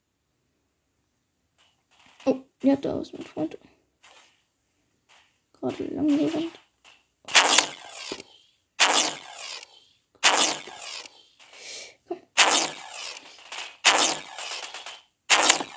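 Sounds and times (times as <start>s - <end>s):
speech: 2.2s - 3.7s, 5.6s - 6.6s
automatic gunfire in the Roblox video game: 4.0s - 4.4s, 5.1s - 6.6s, 7.3s - 8.2s, 8.8s - 11.6s, 12.3s - 15.7s.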